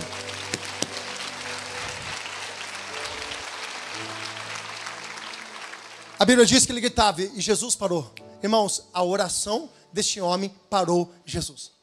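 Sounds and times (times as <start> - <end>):
audience applauding: 0.0 - 6.8
speech: 6.2 - 11.8.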